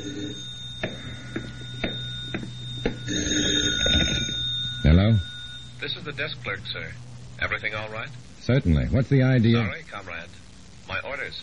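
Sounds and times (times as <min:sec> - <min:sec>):
telephone ringing: 0:00.0 - 0:07.8
speech: 0:05.9 - 0:11.4.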